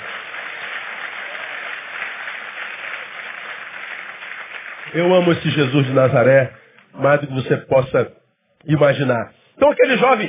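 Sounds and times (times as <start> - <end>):
audience applause: 0.0 - 6.0
speech: 4.9 - 10.2.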